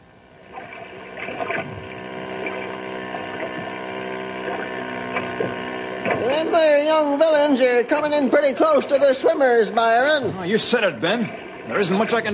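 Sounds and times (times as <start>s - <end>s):
motorboats speeding across a lake: 0.0s - 12.3s
speech: 6.4s - 12.3s.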